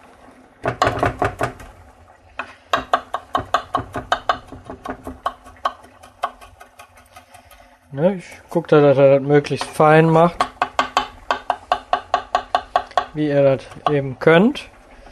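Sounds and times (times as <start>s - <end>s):
knife dicing onions on cutting board: 2.7s - 7.6s, 9.6s - 14.0s
speech: 8.0s - 10.5s, 13.2s - 14.8s.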